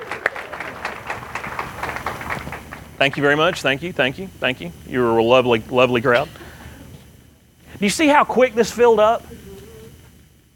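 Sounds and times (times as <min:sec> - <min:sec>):
scattered audience applause at a live show: 0:00.0 - 0:03.7
speech: 0:03.0 - 0:06.4, 0:07.8 - 0:09.4.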